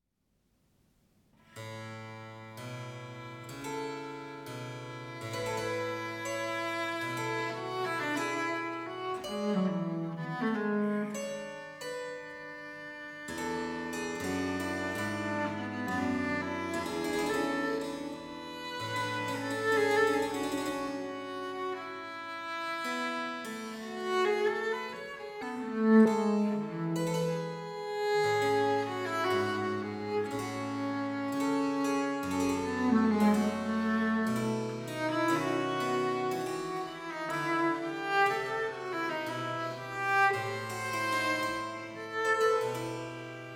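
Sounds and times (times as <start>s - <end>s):
viola da gamba and harpsichord adagio in G minor: 2.0s - 43.5s.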